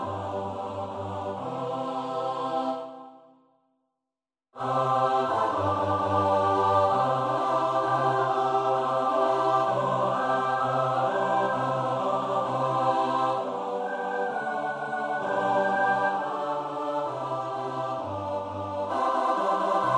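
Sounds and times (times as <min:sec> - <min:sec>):
SATB choir singing a carol: 0:00.0 - 0:03.4, 0:04.6 - 0:19.9.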